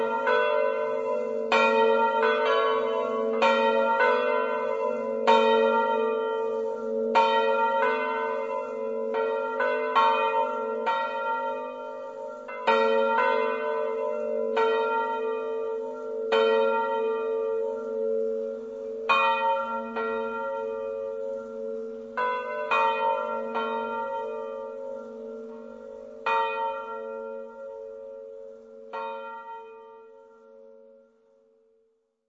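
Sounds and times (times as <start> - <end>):
bells in Zeglianutto: 0.0 - 30.8.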